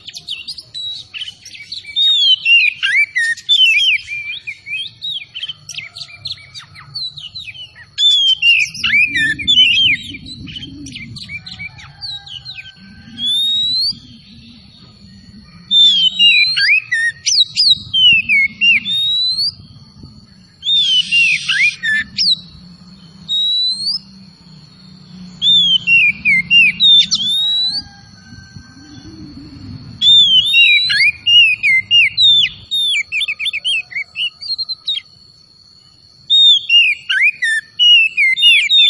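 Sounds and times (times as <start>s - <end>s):
Oriental magpie-robin whistling song: 0.0s - 35.1s, 35.8s - 38.8s
low hum: 8.7s - 16.5s, 17.2s - 30.4s.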